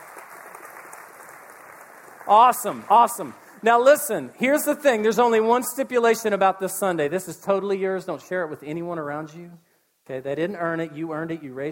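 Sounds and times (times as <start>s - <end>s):
crowd clapping: 0.0s - 3.6s
speech: 2.3s - 11.7s.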